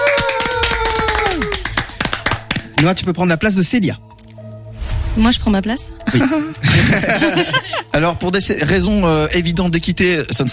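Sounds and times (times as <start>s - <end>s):
audience applause in a French game-show studio: 0.0s - 2.9s
speech: 2.8s - 4.2s, 5.2s - 10.5s
laughter: 6.1s - 8.0s.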